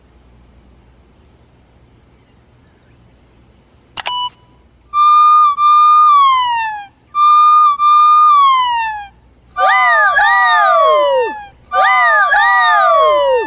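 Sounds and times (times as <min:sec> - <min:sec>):
fire truck siren: 0:05.0 - 0:13.4.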